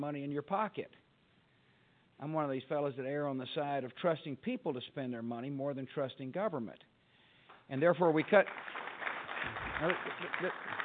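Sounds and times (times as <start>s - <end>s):
speech: 0.0s - 1.1s, 2.2s - 6.9s, 7.7s - 8.8s, 9.4s - 10.8s
crowd applause: 8.2s - 10.8s.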